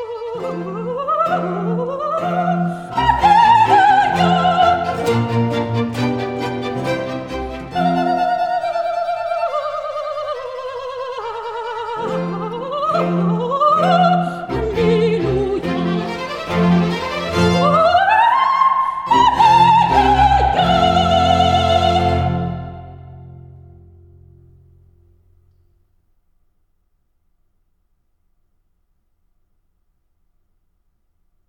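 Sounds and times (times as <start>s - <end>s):
solo alleluia singing: 0.0s - 6.2s, 7.6s - 23.3s.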